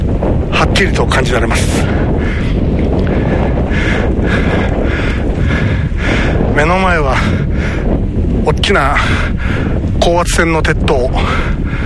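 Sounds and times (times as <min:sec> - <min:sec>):
sea wind blowing: 0:00.0 - 0:11.8
speech: 0:00.8 - 0:02.6, 0:03.2 - 0:05.1, 0:06.6 - 0:07.8, 0:08.4 - 0:11.8.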